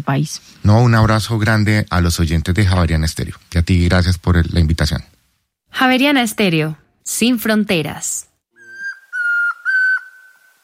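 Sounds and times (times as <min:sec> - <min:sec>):
speech: 0:00.0 - 0:08.3
man whistling an imitation of a tororoi's song: 0:08.6 - 0:10.6.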